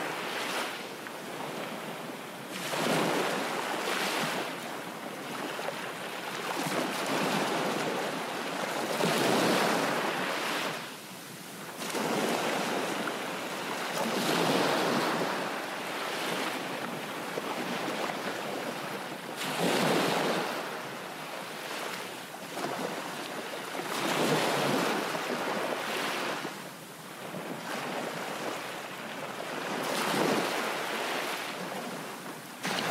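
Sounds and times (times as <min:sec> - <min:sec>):
seaside ocean waves: 0:00.0 - 0:32.8.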